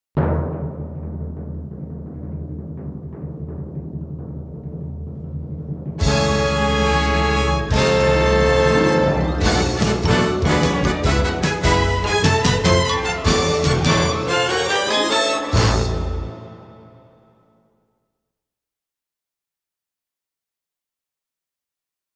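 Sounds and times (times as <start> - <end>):
fanfare: 6.0 - 17.4.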